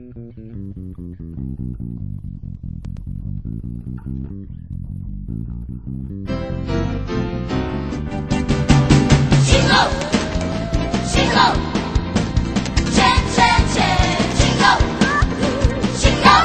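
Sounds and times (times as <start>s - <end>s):
Christmas song: 6.4s - 16.4s.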